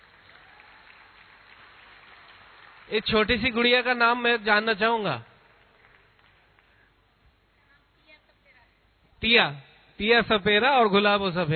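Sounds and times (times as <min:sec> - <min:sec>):
audience applause: 0:00.0 - 0:06.9
speech: 0:02.9 - 0:05.3, 0:09.2 - 0:11.5.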